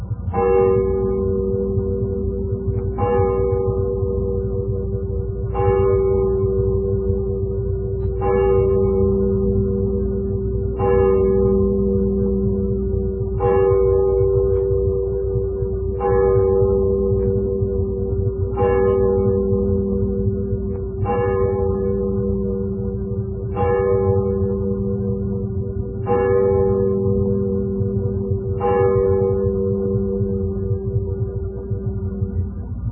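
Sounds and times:
church clock bell striking midnight: 0.2s - 32.9s.

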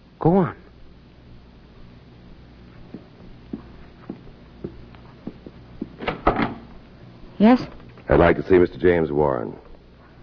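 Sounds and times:
speech: 0.2s - 0.6s, 7.4s - 9.6s
door being answered and opened: 6.0s - 6.7s.

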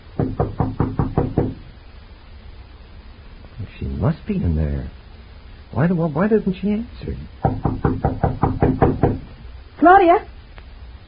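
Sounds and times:
knocking on a door: 0.2s - 1.6s, 7.4s - 9.3s
speech: 4.0s - 5.0s, 5.7s - 8.8s, 9.8s - 10.3s.

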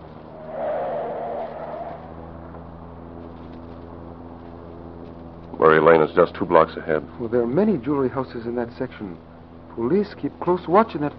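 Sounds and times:
car turning a corner, radio drama sound effect: 0.0s - 8.2s
speech: 5.6s - 11.1s.

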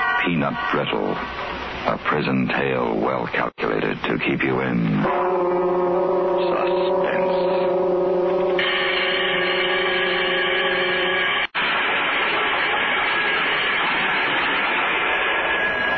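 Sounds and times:
loud prison bell ringing: 0.0s - 1.5s, 5.1s - 15.9s
speech: 0.3s - 5.3s.

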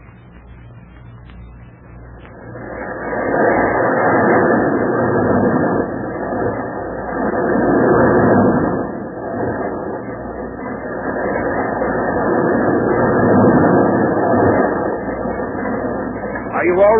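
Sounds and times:
Whirlwind roller coaster ride rattling rumble, radio drama sound effect: 0.0s - 16.9s.

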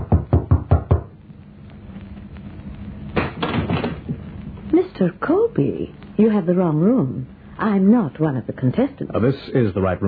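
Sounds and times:
knocking on a hotel room door: 0.0s - 1.1s, 3.2s - 4.0s
door clatter: 3.2s - 4.2s
speech: 5.0s - 10.0s.

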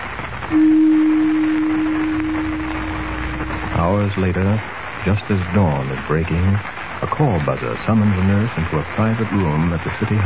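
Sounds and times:
speech: 0.5s - 0.8s, 4.0s - 10.2s
gong struck: 0.5s - 3.8s.

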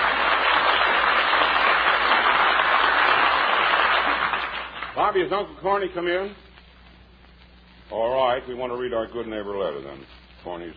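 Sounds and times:
crowd clapping and cheering: 0.0s - 5.0s
speech: 5.1s - 6.4s, 7.9s - 10.7s.

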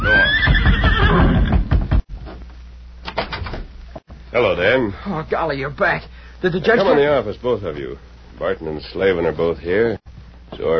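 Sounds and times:
horse neighing: 0.0s - 1.7s
speech: 4.4s - 10.7s.

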